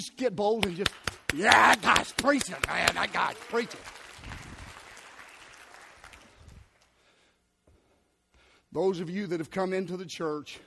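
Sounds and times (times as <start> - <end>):
speech: 0.0 - 4.0, 8.7 - 10.6
audience clapping: 0.5 - 7.1.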